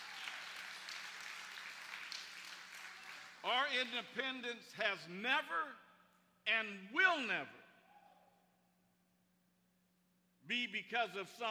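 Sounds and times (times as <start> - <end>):
audience applause, hand clapping: 0.0 - 3.9
speech: 3.4 - 5.8, 6.4 - 7.6, 10.5 - 11.5.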